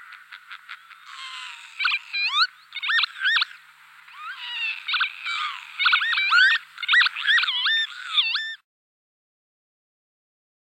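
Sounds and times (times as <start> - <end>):
Northern Lapwing wheezy calls: 0.7 - 3.5, 4.1 - 8.6.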